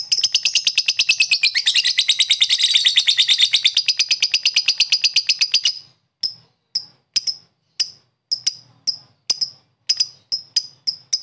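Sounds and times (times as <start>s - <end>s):
lovebird chattering trill: 0.0s - 11.2s.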